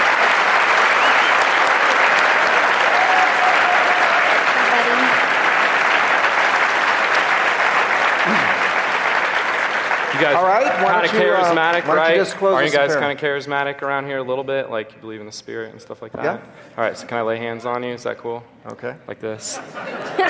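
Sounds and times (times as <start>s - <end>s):
audience applause: 0.0s - 12.8s
speech: 10.2s - 20.2s
laughter: 19.4s - 20.2s.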